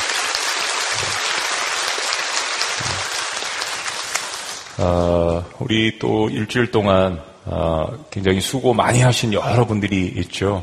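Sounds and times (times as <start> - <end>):
audience applause: 0.0 - 4.8
low thumps: 0.9 - 1.2, 2.8 - 3.0
speech: 4.8 - 10.6.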